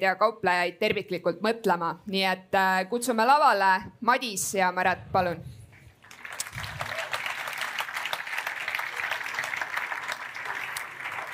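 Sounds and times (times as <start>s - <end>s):
speech: 0.0s - 5.6s
clapping: 6.0s - 11.3s.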